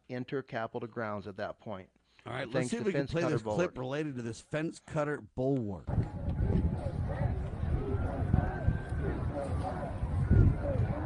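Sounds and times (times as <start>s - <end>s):
speech: 0.1s - 6.1s
distant crowd in recorded video: 5.9s - 11.0s.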